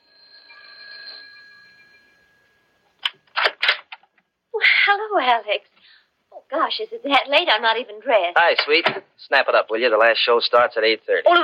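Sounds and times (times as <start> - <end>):
doorbell ringing: 0.0 - 2.9
speech: 4.9 - 5.7, 6.5 - 11.4.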